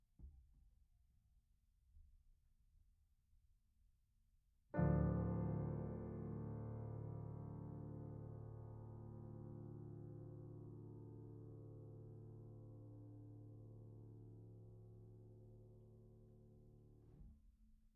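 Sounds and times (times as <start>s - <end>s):
piano: 4.7s - 17.9s.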